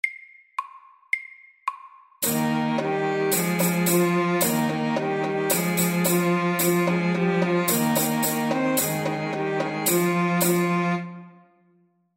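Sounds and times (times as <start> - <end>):
folk dance music: 2.2 - 11.2.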